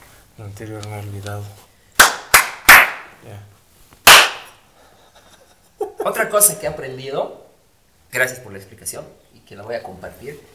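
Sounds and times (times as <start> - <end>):
speech: 0.4 - 1.7, 3.2 - 3.6, 6.0 - 7.4, 8.1 - 10.5
film clapperboard snap: 2.0 - 3.2, 4.0 - 4.6.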